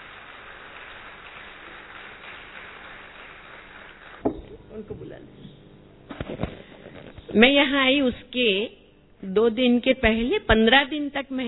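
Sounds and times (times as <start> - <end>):
audience applause: 0.0 - 4.3
speech: 4.8 - 6.6, 7.3 - 11.4.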